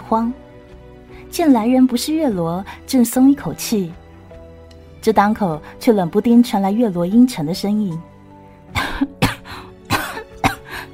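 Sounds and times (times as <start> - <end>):
speech: 0.1 - 0.4, 1.3 - 4.0, 5.0 - 8.1
person coughing: 8.8 - 10.7.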